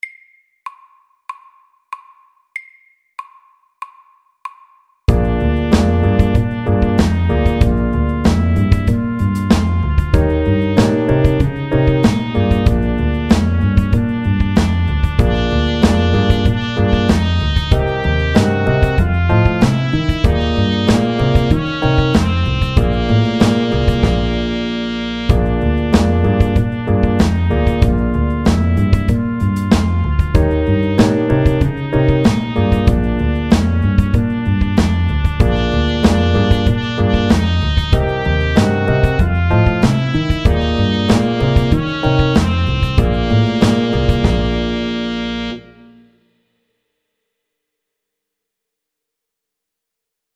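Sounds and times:
chromatic blues: 0:05.1 - 0:46.0.

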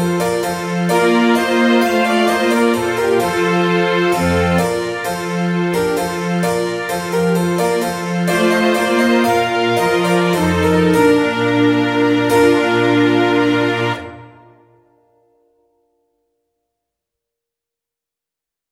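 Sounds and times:
trumpet tune: 0:00.0 - 0:14.7.

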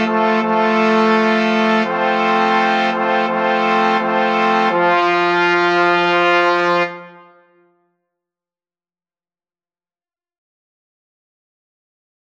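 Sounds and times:
slow fanfare for three: 0:00.0 - 0:07.7.

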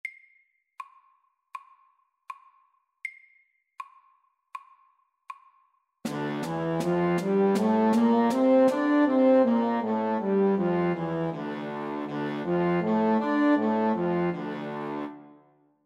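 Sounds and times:
music in D minor: 0:06.1 - 0:15.6.

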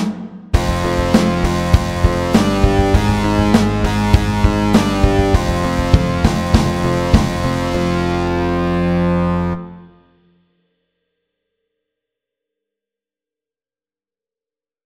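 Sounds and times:
fast pirate rock music: 0:00.0 - 0:09.6.

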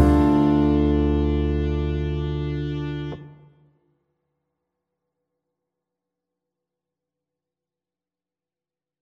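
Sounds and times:
slow pop ballad: 0:00.0 - 0:03.2.

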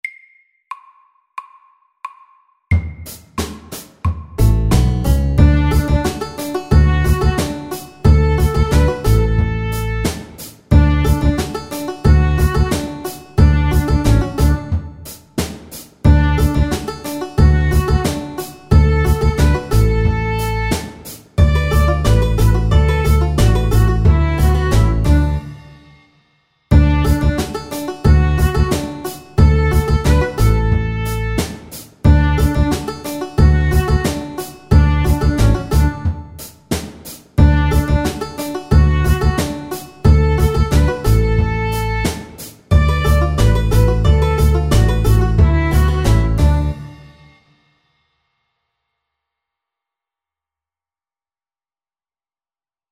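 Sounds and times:
bluegrass music: 0:04.4 - 0:14.9, 0:16.1 - 0:25.6, 0:26.7 - 0:31.5, 0:32.1 - 0:36.2, 0:37.4 - 0:46.9.

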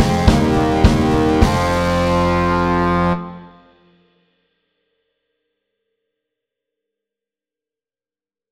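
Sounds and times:
medium heavy metal music: 0:00.0 - 0:03.8.

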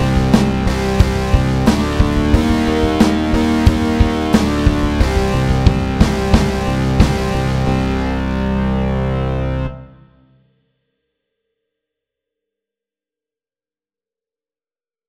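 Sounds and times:
medium-tempo pirate rock music: 0:00.0 - 0:10.2.

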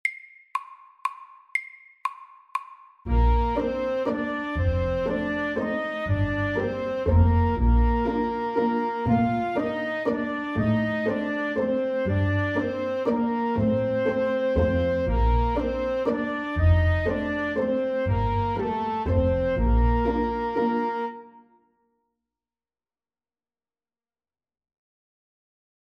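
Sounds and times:
loud legato waltz: 0:03.1 - 0:21.3.

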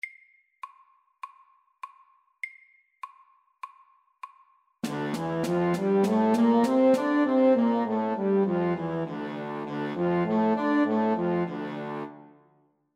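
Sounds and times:
loud natural D minor music: 0:04.8 - 0:12.5.

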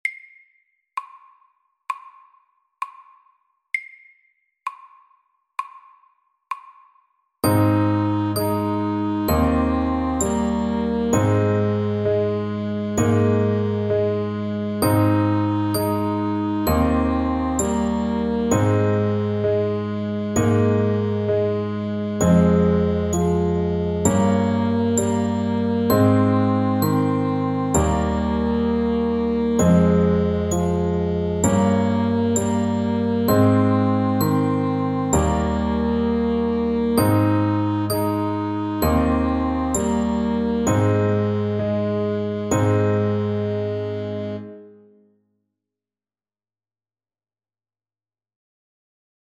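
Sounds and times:
slow lullaby: 0:07.4 - 0:44.8.

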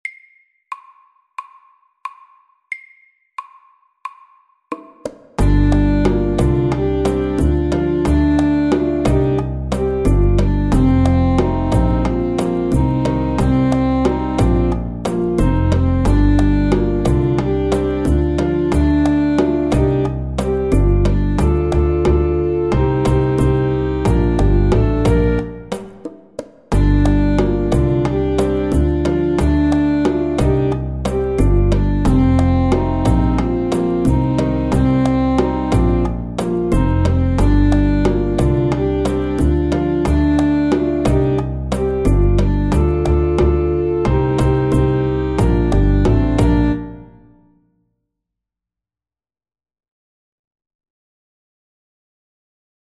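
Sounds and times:
driving saxophones: 0:05.4 - 0:25.7, 0:26.7 - 0:47.0.

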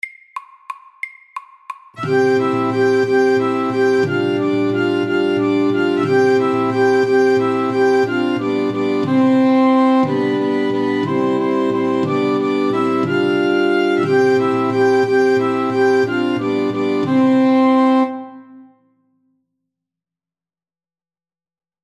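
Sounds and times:
fast Irish melody at 180 BPM: 0:01.9 - 0:18.6.

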